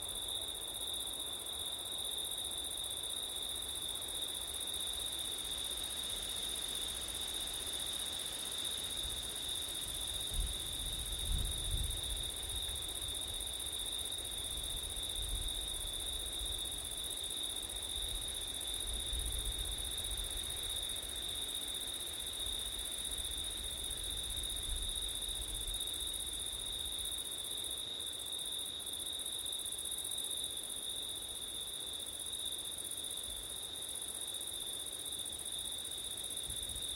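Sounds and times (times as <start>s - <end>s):
crickets trilling: 0.1s - 36.9s.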